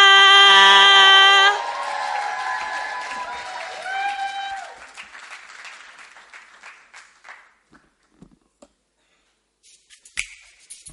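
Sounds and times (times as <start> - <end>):
audience cheering to welcome a singer: 0.0 - 5.8
audience applauding to welcome a singer: 1.1 - 7.7.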